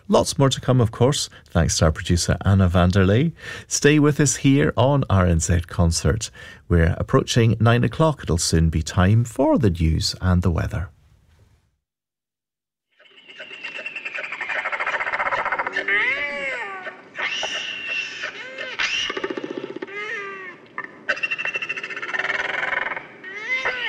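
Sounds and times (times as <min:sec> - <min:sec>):
speech: 0:00.1 - 0:11.0
royal albatross call: 0:13.0 - 0:23.8.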